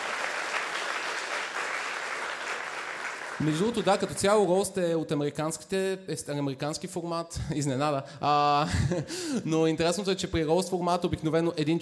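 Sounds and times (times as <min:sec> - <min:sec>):
audience applause: 0:00.0 - 0:04.1
speech: 0:03.4 - 0:11.7
laughter: 0:08.5 - 0:09.2.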